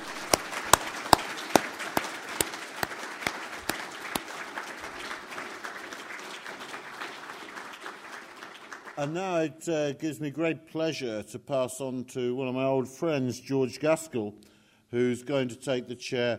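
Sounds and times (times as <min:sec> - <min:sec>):
audience applause: 0:00.0 - 0:09.1
speech: 0:09.0 - 0:16.3.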